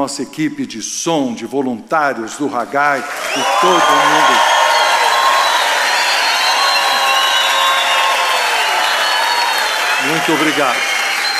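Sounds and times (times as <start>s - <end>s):
speech: 0.0s - 4.6s, 10.2s - 10.9s
crowd cheering: 2.4s - 11.3s
crowd clapping: 3.0s - 11.3s
crowd whistling: 3.2s - 11.3s.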